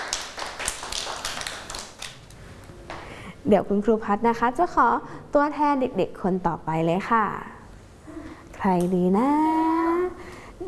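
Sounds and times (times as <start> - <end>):
children clapping hands: 0.0 - 2.3
speech: 3.4 - 7.5, 8.6 - 9.6.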